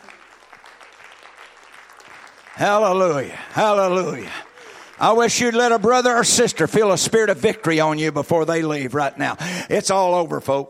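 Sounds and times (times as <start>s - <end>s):
audience clapping hands: 0.0s - 7.9s
speech: 2.6s - 10.6s.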